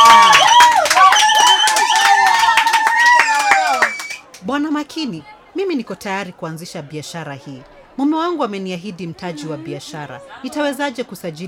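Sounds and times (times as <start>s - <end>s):
high vocal whoops: 0.0s - 4.2s
audience clapping at a Swahili-language gathering: 0.0s - 4.5s
speech: 5.0s - 11.4s.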